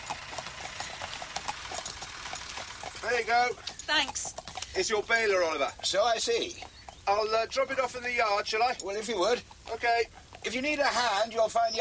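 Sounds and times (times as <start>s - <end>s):
tractor engine running near a horse: 0.0s - 4.9s
speech: 3.0s - 11.7s.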